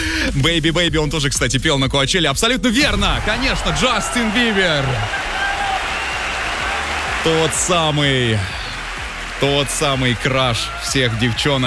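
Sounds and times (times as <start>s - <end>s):
speech: 0.3s - 5.4s, 7.2s - 8.6s, 9.4s - 11.6s
applause for a quiz winner: 3.5s - 11.6s.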